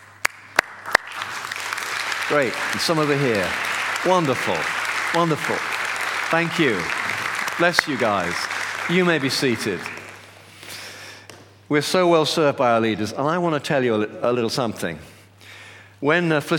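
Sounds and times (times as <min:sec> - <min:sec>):
audience applauding standing leaders: 0:00.0 - 0:10.9
speech: 0:02.3 - 0:05.7, 0:06.3 - 0:10.0, 0:11.7 - 0:15.1, 0:16.0 - 0:16.5.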